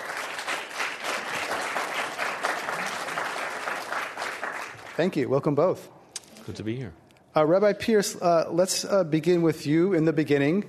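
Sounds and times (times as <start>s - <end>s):
audience applause welcoming two guest speakers at an event in San Francisco: 0.0s - 5.2s
speech: 5.0s - 10.6s.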